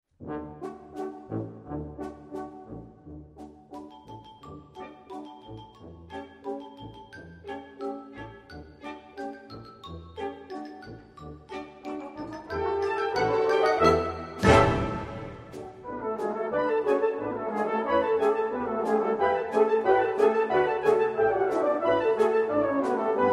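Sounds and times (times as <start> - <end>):
polka fanfare: 11.9 - 23.3.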